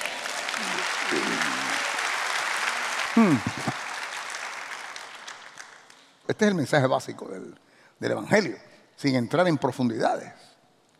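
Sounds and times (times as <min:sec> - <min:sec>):
audience applause: 0:00.0 - 0:05.9
speech: 0:03.2 - 0:03.8, 0:06.3 - 0:10.9.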